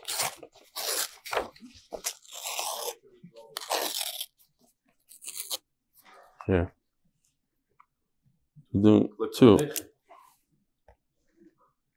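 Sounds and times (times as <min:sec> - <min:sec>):
paper being ripped up: 0:00.0 - 0:04.5, 0:05.1 - 0:05.6
speech: 0:06.5 - 0:06.8, 0:08.7 - 0:09.9.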